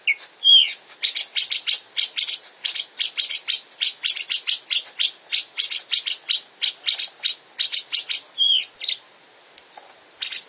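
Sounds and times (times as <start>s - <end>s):
Grey-cheeked bulbul song: 0.0s - 9.0s.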